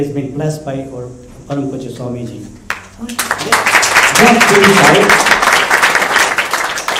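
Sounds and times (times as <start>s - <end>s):
speech: 0.0s - 5.6s
audience clapping: 2.7s - 6.9s.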